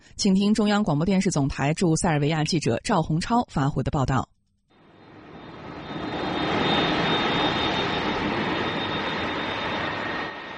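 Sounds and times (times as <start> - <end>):
speech: 0.1 - 4.4
faint high whine: 4.7 - 10.5
passenger jet engine roar landing at an international airport: 4.8 - 10.5.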